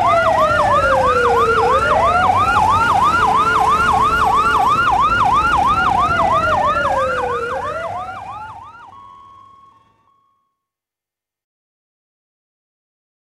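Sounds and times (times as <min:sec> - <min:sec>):
ambulance sirens: 0:00.0 - 0:10.5.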